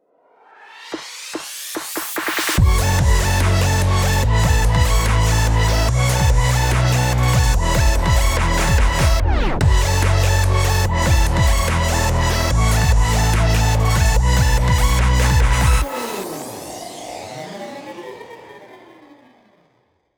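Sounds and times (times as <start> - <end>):
electro rock music: 2.5 - 16.2.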